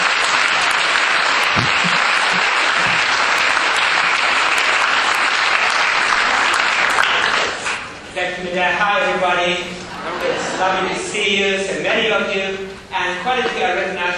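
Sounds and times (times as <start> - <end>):
audience applause: 0.0 - 7.9
speech: 8.3 - 14.1.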